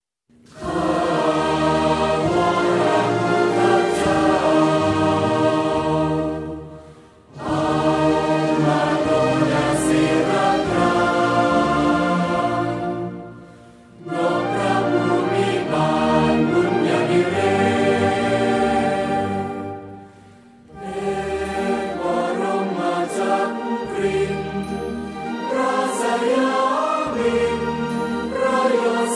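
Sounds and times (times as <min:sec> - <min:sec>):
royal anthem music: 0:00.5 - 0:29.1.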